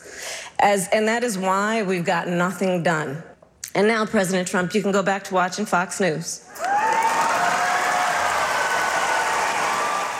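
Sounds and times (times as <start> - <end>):
speech: 0.6 - 6.7
debate crowd clapping: 6.6 - 10.1.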